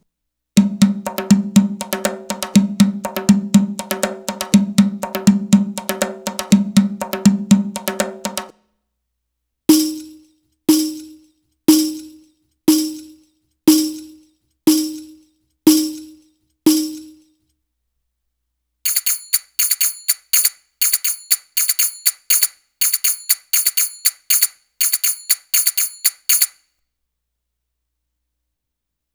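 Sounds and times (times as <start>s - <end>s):
Arabic rhythm percussion: 0.6s - 8.5s, 9.7s - 17.3s, 18.9s - 26.6s.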